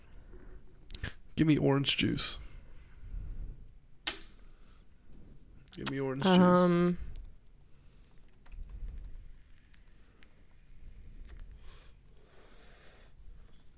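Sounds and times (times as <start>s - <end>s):
speech: 1.4s - 2.5s, 5.8s - 7.1s
keyboard typing: 8.0s - 9.0s.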